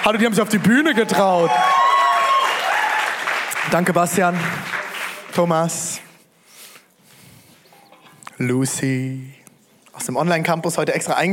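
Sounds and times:
speech: 0.0 - 1.9, 3.7 - 4.8, 5.4 - 6.1, 8.4 - 9.4, 10.0 - 11.3
audience applause: 0.0 - 5.4.

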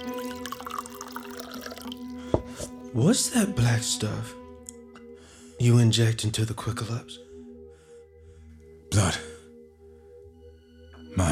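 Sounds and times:
drink being poured: 0.0 - 2.8
speech: 2.9 - 4.4, 5.6 - 7.3, 9.0 - 9.3.

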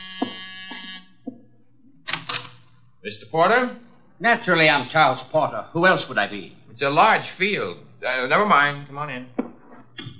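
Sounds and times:
harsh electric doorbell buzzer: 0.0 - 1.2
speech: 3.1 - 9.4.

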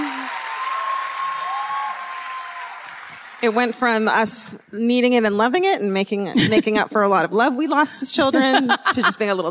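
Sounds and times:
audience clapping: 0.0 - 3.8
speech: 3.4 - 9.4
laughter: 8.3 - 9.4.

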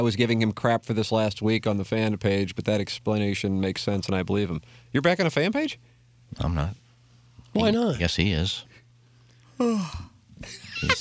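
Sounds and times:
speech: 0.0 - 6.8, 7.6 - 8.7, 9.6 - 11.0
person yawning: 9.6 - 10.2.

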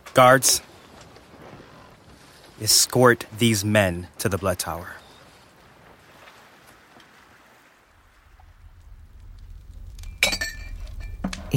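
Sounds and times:
speech: 0.2 - 0.7, 2.6 - 5.0
low rumbling background: 8.0 - 11.5
wine bottle clinking glass rim: 10.1 - 11.4.

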